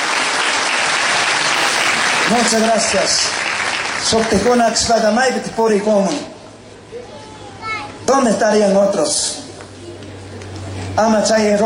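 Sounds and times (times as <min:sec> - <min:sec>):
audience applause: 0:00.0 - 0:05.2
speech: 0:02.3 - 0:06.3, 0:08.1 - 0:09.4, 0:11.0 - 0:11.6.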